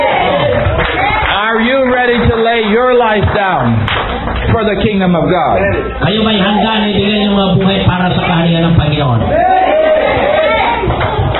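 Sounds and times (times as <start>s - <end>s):
audience shouting: 0.0s - 1.3s, 9.3s - 11.0s
audience clapping: 0.2s - 4.8s, 6.1s - 8.4s, 10.4s - 11.3s
speech: 2.7s - 4.0s, 4.6s - 9.6s.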